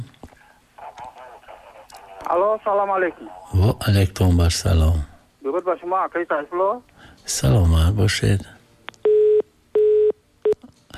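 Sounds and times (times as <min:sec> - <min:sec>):
speech: 0:02.2 - 0:08.6
telephone busy tones after a line cuts off during a radio call-in: 0:09.0 - 0:10.6.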